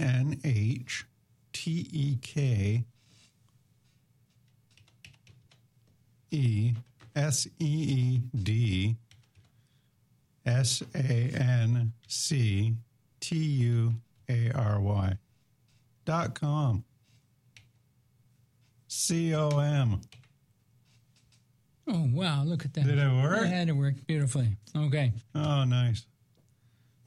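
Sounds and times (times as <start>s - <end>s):
speech: 0.0s - 2.9s, 6.3s - 9.0s, 10.4s - 15.2s, 16.0s - 16.9s, 18.9s - 20.2s, 21.9s - 26.1s
typing a web address on a computer keyboard: 4.4s - 5.7s, 6.6s - 7.2s, 9.1s - 9.6s, 17.5s - 17.8s, 19.5s - 21.4s.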